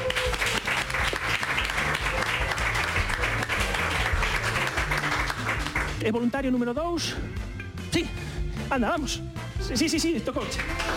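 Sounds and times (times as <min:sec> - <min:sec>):
audience applause: 0:00.0 - 0:06.0, 0:10.4 - 0:10.9
speech: 0:06.0 - 0:10.9.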